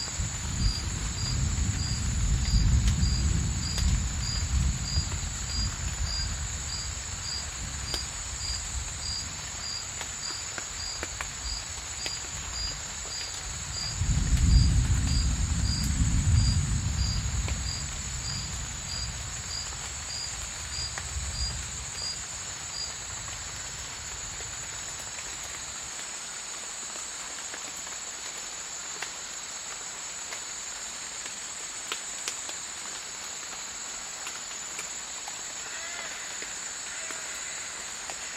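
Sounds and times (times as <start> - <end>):
thunder rumbling in a Borneo rainforest: 0.0 - 9.8, 13.4 - 22.3
faint drips and patter: 0.0 - 38.3.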